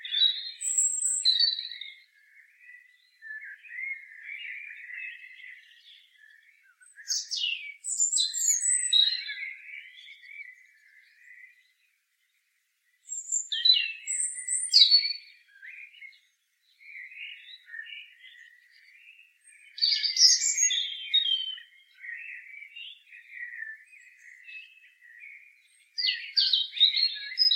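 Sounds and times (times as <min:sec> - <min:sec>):
European robin song: 0:00.0 - 0:27.5.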